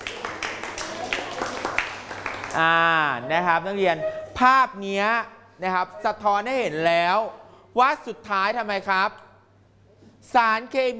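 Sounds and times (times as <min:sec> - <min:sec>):
students clapping for a classmate: 0:00.0 - 0:02.7
speech: 0:02.6 - 0:09.2, 0:10.2 - 0:10.9.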